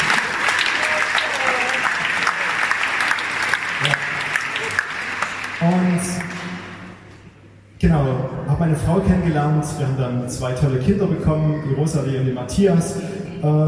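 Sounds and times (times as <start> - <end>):
audience applause: 0.0 - 7.0
speech: 8.7 - 13.6.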